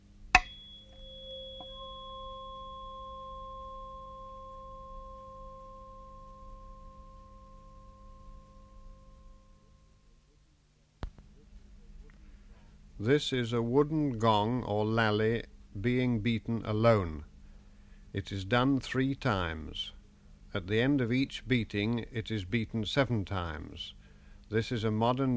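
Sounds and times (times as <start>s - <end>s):
tuning fork ringing the note C: 0.3s - 10.4s
speech: 13.0s - 17.3s, 18.1s - 25.3s.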